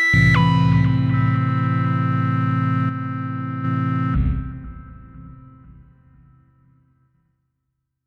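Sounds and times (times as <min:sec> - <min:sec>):
Am120 chords: 0:00.1 - 0:06.5.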